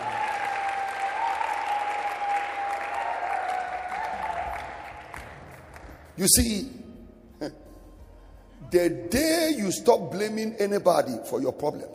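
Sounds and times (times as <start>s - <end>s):
audience clapping hands: 0.0s - 6.2s
speech: 6.2s - 6.8s, 7.4s - 7.6s, 8.7s - 11.9s.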